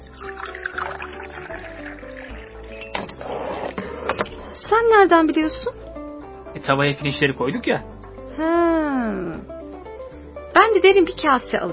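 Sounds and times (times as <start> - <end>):
water poured into a cooking pot: 0.0 - 3.7
speech: 4.7 - 5.8, 6.6 - 8.5, 10.8 - 11.7.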